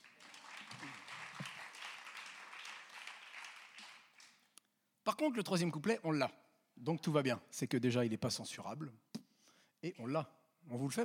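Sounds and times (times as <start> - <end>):
audience applause: 0.0 - 4.4
speech: 5.1 - 9.1, 9.8 - 11.0.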